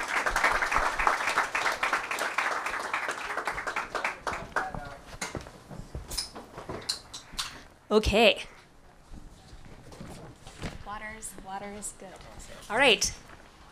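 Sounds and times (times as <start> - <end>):
audience applause: 0.0 - 5.0
speech: 7.9 - 8.5, 11.2 - 13.2.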